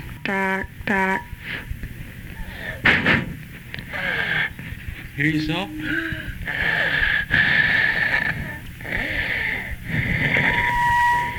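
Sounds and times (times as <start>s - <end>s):
speech: 0.2s - 1.8s, 2.8s - 3.3s, 5.2s - 7.1s
wheezing during an asthma attack: 2.4s - 3.0s, 3.9s - 4.6s, 5.8s - 11.3s.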